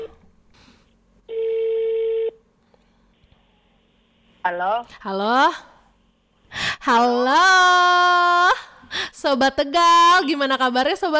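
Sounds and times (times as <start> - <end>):
steady mid-pitched phone ringback tone: 1.3 - 2.4
speech: 4.4 - 5.7, 6.8 - 8.5, 9.2 - 11.1.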